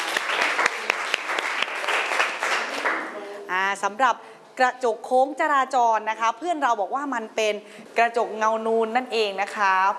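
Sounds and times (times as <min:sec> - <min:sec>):
loud applause from classmates: 0:00.0 - 0:03.2
speech: 0:03.7 - 0:09.9.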